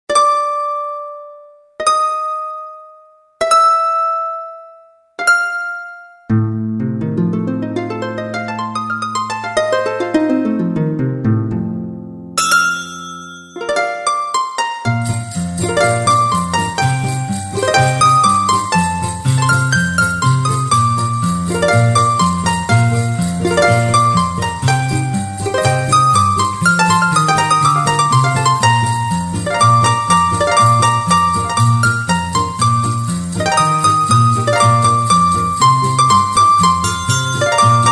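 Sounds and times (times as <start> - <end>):
instrumental music: 0.1 - 37.9.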